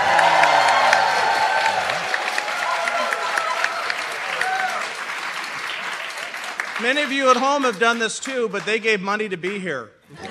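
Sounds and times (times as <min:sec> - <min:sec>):
crowd whooping and cheering: 0:00.0 - 0:05.2
live studio audience applauding: 0:00.0 - 0:10.2
speech: 0:06.8 - 0:10.2.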